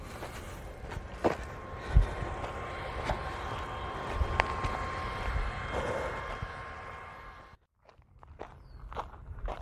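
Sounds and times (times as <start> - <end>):
water pump running: 0.8 - 7.6.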